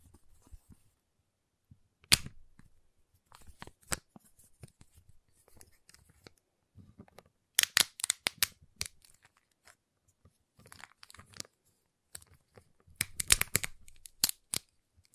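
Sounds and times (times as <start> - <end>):
giant chocolate bar tapped, cut and snapped: 2.0 - 2.4, 7.6 - 9.1, 13.0 - 14.7.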